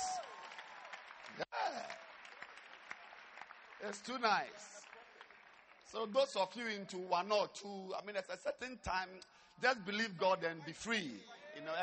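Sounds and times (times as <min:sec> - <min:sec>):
audience clapping hands: 0:00.0 - 0:06.8
speech: 0:03.8 - 0:04.9, 0:05.9 - 0:11.8.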